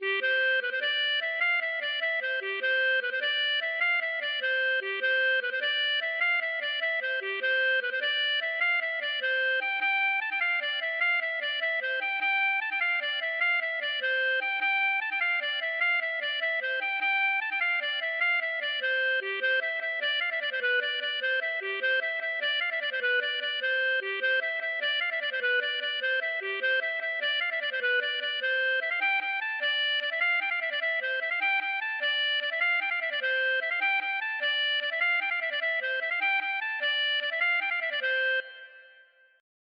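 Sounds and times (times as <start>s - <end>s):
folk dance tune: 0.0s - 39.2s.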